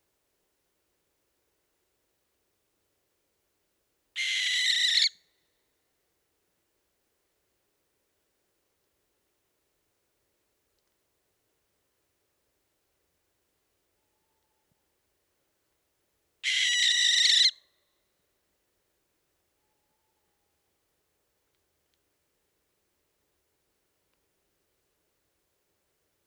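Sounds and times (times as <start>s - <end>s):
barn owl Tyto alba calling: 4.2s - 5.2s, 16.4s - 17.6s.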